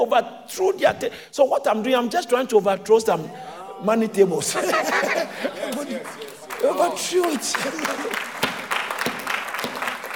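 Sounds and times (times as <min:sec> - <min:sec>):
speech: 0:00.0 - 0:08.4
laughter: 0:03.3 - 0:08.3
audience applause: 0:05.0 - 0:10.1.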